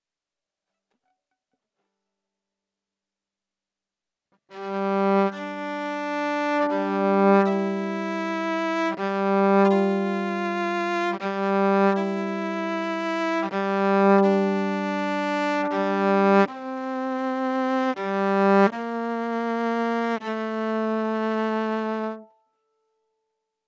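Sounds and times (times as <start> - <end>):
violin: 4.5 - 22.4.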